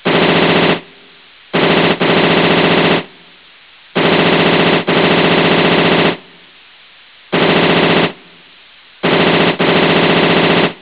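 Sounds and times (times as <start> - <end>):
machine gun firing: 0.0 - 0.9, 1.6 - 3.1, 4.0 - 6.4, 7.3 - 8.4, 9.0 - 10.7.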